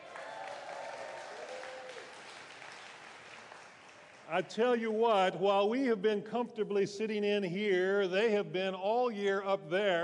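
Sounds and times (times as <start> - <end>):
audience cheering and applause: 0.0 - 4.2
speech: 4.3 - 10.0.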